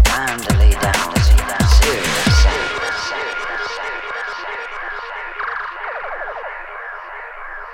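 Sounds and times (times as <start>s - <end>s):
serious sound effect beats: 0.1s - 3.7s.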